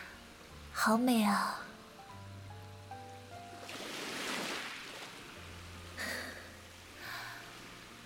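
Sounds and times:
speech: 0:00.9 - 0:01.7
ocean waves: 0:03.6 - 0:07.9.

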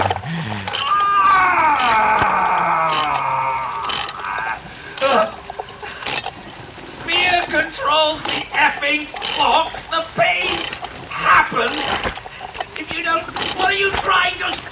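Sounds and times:
wind-up mechanism winding: 0:00.0 - 0:06.4, 0:07.1 - 0:14.7.

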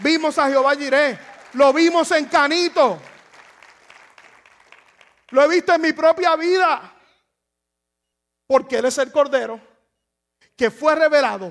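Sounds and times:
audience applause: 0:00.0 - 0:05.3
speech: 0:00.2 - 0:03.1, 0:05.3 - 0:07.0, 0:08.5 - 0:09.7, 0:10.6 - 0:11.5.

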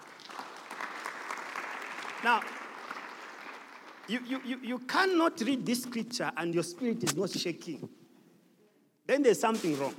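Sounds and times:
audience clapping hands: 0:00.0 - 0:05.2
speech: 0:02.2 - 0:02.6, 0:04.1 - 0:08.0, 0:09.1 - 0:09.9.

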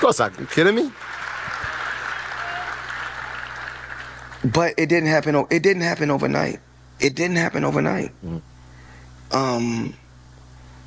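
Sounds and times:
speech: 0:00.0 - 0:01.2, 0:04.4 - 0:08.5, 0:09.3 - 0:10.0
audience clapping: 0:00.0 - 0:04.6.

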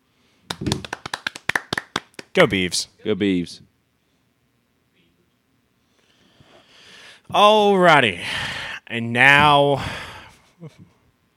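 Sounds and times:
hand claps: 0:00.5 - 0:02.4
speech: 0:00.6 - 0:00.9, 0:02.4 - 0:03.7, 0:07.3 - 0:10.8.

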